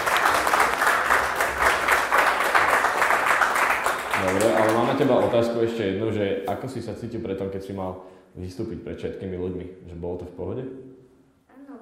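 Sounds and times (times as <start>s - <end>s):
audience applause: 0.0s - 5.7s
speech: 5.0s - 10.8s.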